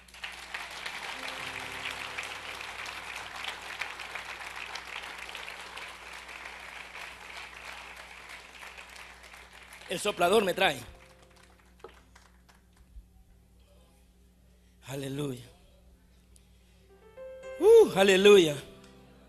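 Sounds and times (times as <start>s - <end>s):
audience applause: 0.0s - 12.7s
faint low hum: 0.0s - 17.1s
speech: 9.9s - 11.0s, 18.0s - 18.6s.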